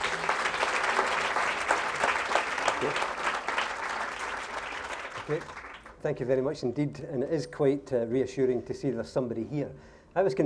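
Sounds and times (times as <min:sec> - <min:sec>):
audience applause welcoming a professor: 0:00.0 - 0:06.0
speech: 0:02.8 - 0:03.1, 0:05.3 - 0:10.4.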